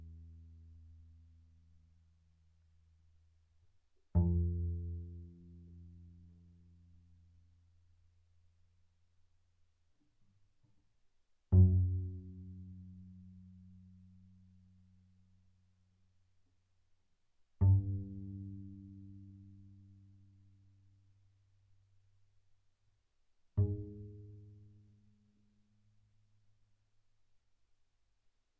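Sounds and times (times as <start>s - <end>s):
double bass pizzicato on the D string: 4.1s - 6.7s, 11.5s - 14.4s, 17.6s - 20.4s, 23.6s - 25.1s.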